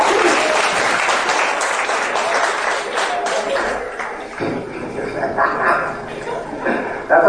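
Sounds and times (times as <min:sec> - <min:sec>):
audience applause: 0:00.0 - 0:04.4
laughter: 0:04.8 - 0:07.1.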